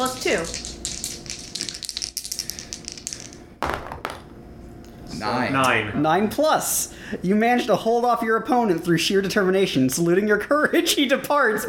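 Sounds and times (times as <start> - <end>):
two dice rattling and clattering: 0.0 - 4.2
speech: 0.3 - 0.7, 5.2 - 11.6.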